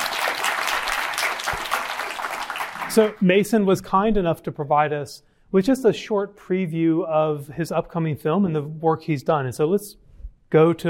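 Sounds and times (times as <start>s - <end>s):
audience applause: 0.0s - 3.2s
speech: 2.9s - 10.8s.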